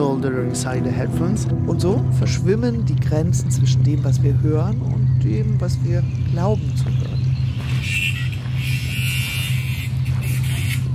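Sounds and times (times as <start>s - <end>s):
speech: 0.1s - 7.1s
angle grinder being used by gardener: 7.5s - 10.9s.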